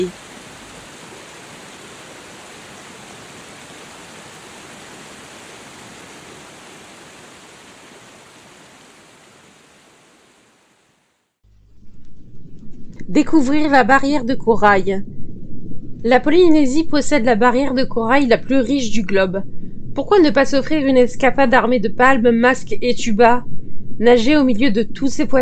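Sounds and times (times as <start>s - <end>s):
speech: 0.0s - 0.2s, 13.1s - 15.1s, 16.0s - 25.3s
large waterfall cascading: 0.0s - 11.2s.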